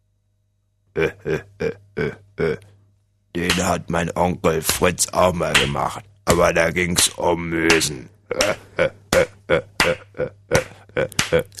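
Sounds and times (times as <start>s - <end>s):
speech: 1.0s - 1.8s, 3.7s - 10.3s
hand clapping: 5.5s - 6.4s, 7.7s - 11.5s.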